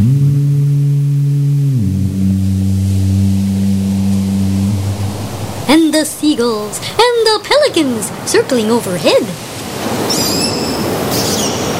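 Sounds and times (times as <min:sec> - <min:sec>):
distant foghorns: 0:00.0 - 0:09.8
beach waves rolling in and out: 0:03.0 - 0:11.7
speech: 0:06.0 - 0:09.4.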